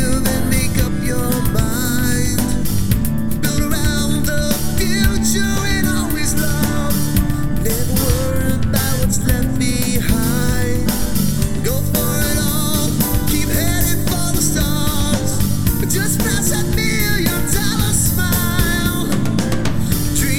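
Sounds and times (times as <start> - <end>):
acoustic harmony karaoke music: 0.0 - 20.3.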